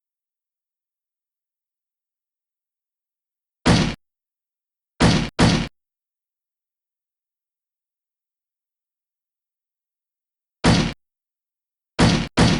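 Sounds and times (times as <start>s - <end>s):
slam: 3.7s - 4.0s, 5.0s - 5.7s, 10.6s - 11.0s, 12.0s - 12.5s.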